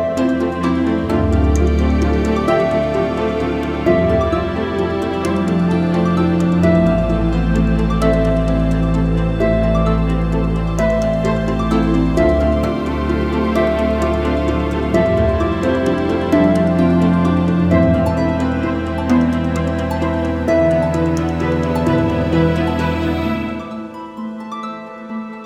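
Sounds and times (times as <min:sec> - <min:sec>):
grand harp: 0:00.0 - 0:25.4.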